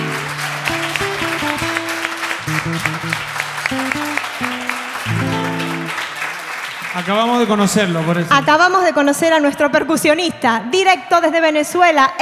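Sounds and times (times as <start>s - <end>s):
audience applause: 0.0s - 8.8s
speech: 7.1s - 12.2s.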